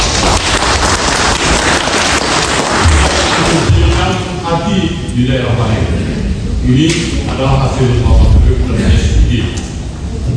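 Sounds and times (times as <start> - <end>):
audience applause: 0.0 - 4.1
speech: 4.7 - 9.7.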